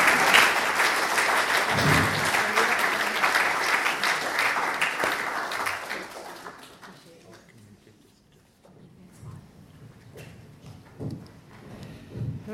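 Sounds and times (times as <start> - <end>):
audience applause: 0.0 - 7.3.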